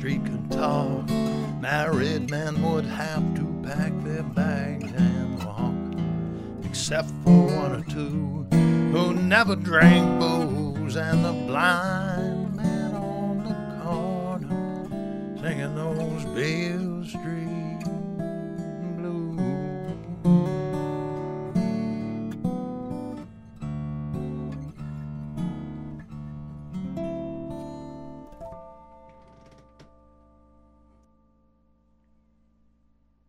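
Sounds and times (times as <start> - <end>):
person singing: 0.0 - 5.8, 6.6 - 14.6, 15.4 - 18.0, 18.7 - 20.0
acoustic guitar: 0.0 - 32.6.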